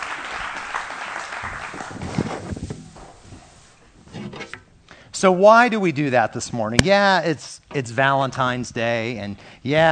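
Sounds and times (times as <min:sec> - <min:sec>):
audience applause: 0:00.0 - 0:02.5
speech: 0:05.2 - 0:09.9.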